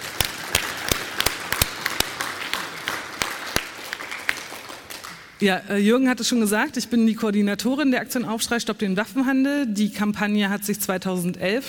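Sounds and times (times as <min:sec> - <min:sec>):
audience applause: 0:00.0 - 0:05.4
speech: 0:05.4 - 0:11.6.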